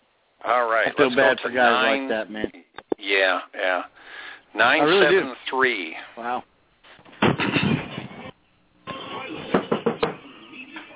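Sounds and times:
speech: 0:00.5 - 0:06.5
knocking on a door: 0:09.5 - 0:10.2.

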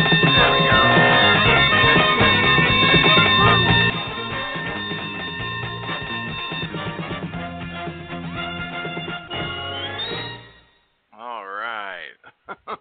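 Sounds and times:
winning bell sound effect ringing: 0:00.0 - 0:07.7
laughter: 0:12.2 - 0:12.7.

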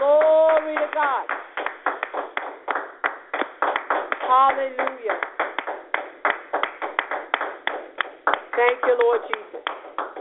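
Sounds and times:
church congregation clapping hands in praise: 0:00.0 - 0:10.1
speech: 0:04.3 - 0:05.3, 0:08.6 - 0:09.4.

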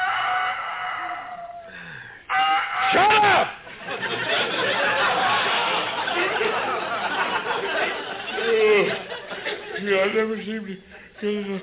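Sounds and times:
rooster crowing: 0:00.0 - 0:01.7
laughter: 0:02.9 - 0:11.6.

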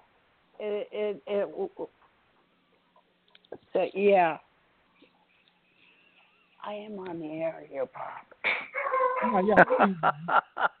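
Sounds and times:
speech: 0:00.6 - 0:02.0, 0:03.5 - 0:04.5, 0:06.6 - 0:10.7
laughter: 0:08.5 - 0:10.7
dog barking: 0:08.8 - 0:09.8.

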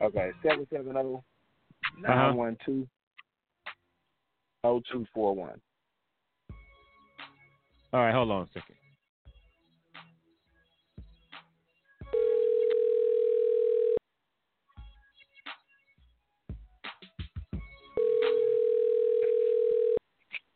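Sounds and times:
speech: 0:00.0 - 0:01.3, 0:01.9 - 0:03.0, 0:04.6 - 0:05.7, 0:07.9 - 0:08.8
ringback tone on an outgoing phone call: 0:12.1 - 0:14.0, 0:18.0 - 0:20.0.

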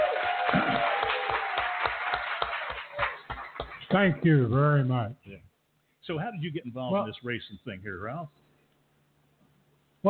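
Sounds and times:
audience applause: 0:00.0 - 0:04.1
speech: 0:03.9 - 0:05.4, 0:06.1 - 0:08.4.

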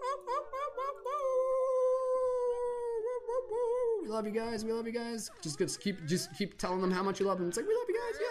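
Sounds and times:
group of people howling like wolves: 0:00.0 - 0:04.1
laughter: 0:00.0 - 0:08.3
people yipping: 0:00.0 - 0:08.3
speech: 0:04.1 - 0:08.3.

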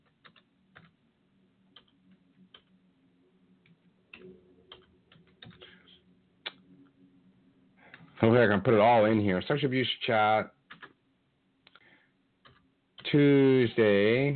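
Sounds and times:
computer keyboard typing: 0:00.0 - 0:00.9, 0:01.7 - 0:02.7, 0:04.1 - 0:05.8, 0:10.7 - 0:11.0, 0:12.4 - 0:13.1
speech: 0:08.2 - 0:10.6, 0:13.1 - 0:14.3.

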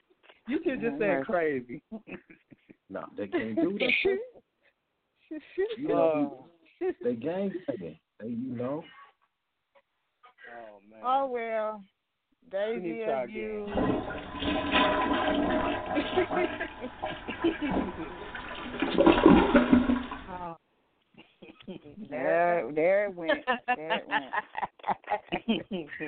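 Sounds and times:
speech: 0:00.5 - 0:04.5, 0:05.3 - 0:09.0, 0:10.5 - 0:19.7, 0:20.4 - 0:26.0
laughter: 0:01.8 - 0:04.3, 0:15.6 - 0:18.4, 0:23.2 - 0:26.0
toilet flushing: 0:13.6 - 0:20.4.

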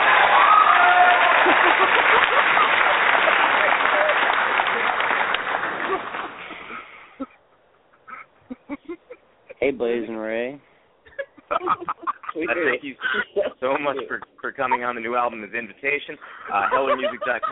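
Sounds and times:
studio audience applause: 0:00.0 - 0:06.8
laughter: 0:00.9 - 0:07.4, 0:08.1 - 0:09.2, 0:11.1 - 0:17.5
speech: 0:09.8 - 0:10.7, 0:11.6 - 0:17.5.

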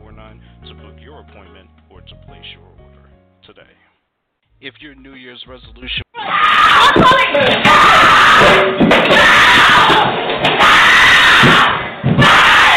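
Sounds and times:
speech: 0:01.2 - 0:03.9, 0:04.6 - 0:06.0
distorted screaming and shouting in a recorded domestic abuse attack: 0:06.2 - 0:12.7.

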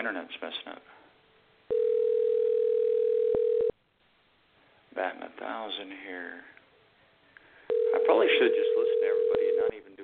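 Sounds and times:
speech: 0:00.0 - 0:01.0, 0:05.0 - 0:06.6, 0:07.9 - 0:09.4
phone line ringing tone: 0:01.7 - 0:03.7, 0:07.7 - 0:09.8.

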